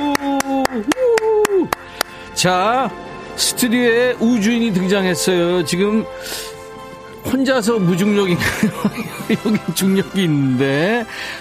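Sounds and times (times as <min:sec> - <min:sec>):
studio applause in a steady rhythmic beat: 0:00.0 - 0:02.3
speech: 0:02.4 - 0:06.5, 0:07.3 - 0:11.3
laughter: 0:08.3 - 0:10.0.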